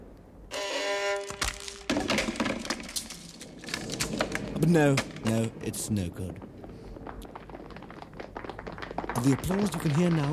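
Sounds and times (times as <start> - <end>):
violin wood cracking and splintering under a foot: 1.3 - 5.4, 6.3 - 10.3
speech: 4.6 - 6.5, 9.2 - 10.3.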